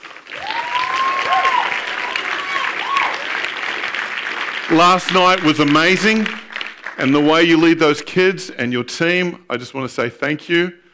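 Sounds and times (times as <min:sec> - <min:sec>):
round of applause: 0:00.0 - 0:08.0
speech: 0:04.7 - 0:06.4, 0:07.0 - 0:10.8.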